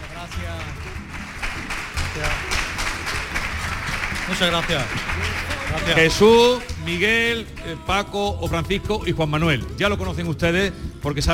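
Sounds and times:
audience applause: 0.0s - 7.7s
speech: 0.3s - 1.2s, 2.2s - 2.6s, 4.3s - 11.3s.

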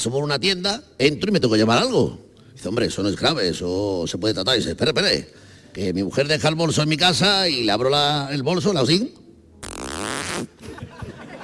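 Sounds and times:
speech: 0.0s - 9.8s
voice imitating a zipper opening: 9.6s - 10.6s
laughter: 10.6s - 11.4s.

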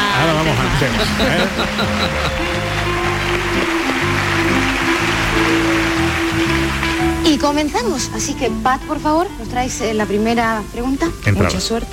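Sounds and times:
laughter: 0.0s - 5.4s
audience applause: 0.0s - 7.9s
speech: 0.5s - 2.7s, 7.4s - 11.9s.

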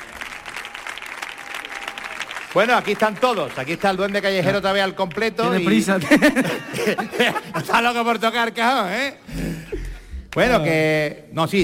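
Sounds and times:
audience applause: 0.0s - 6.5s
speech: 2.5s - 9.5s, 10.3s - 11.6s
laughter: 5.4s - 8.2s.

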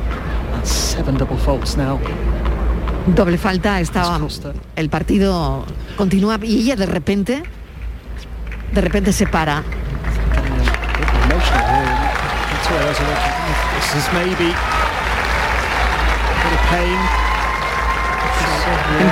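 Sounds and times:
speech: 0.6s - 7.6s, 8.7s - 9.8s, 12.7s - 15.0s, 18.9s - 19.1s
tennis crowd applauding: 8.4s - 19.1s.

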